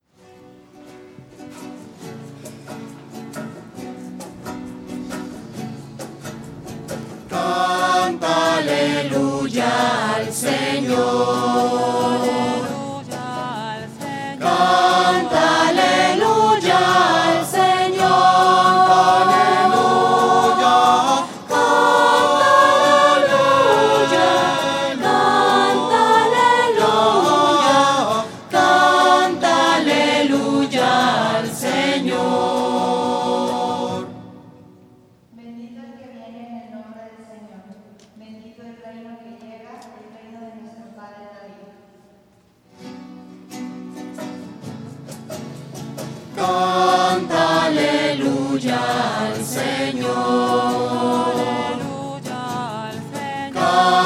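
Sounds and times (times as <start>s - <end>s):
voices singing alleluia: 7.2s - 34.6s, 46.4s - 54.0s.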